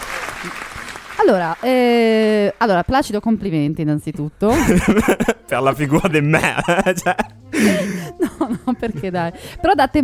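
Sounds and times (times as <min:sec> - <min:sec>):
audience applause: 0:00.0 - 0:01.6
speech: 0:00.4 - 0:10.0
laughter: 0:04.5 - 0:09.3.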